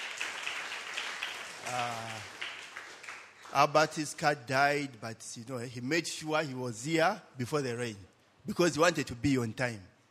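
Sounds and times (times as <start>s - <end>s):
audience applauding with hand claps: 0.0s - 4.0s
speech: 1.7s - 2.4s, 3.5s - 9.9s.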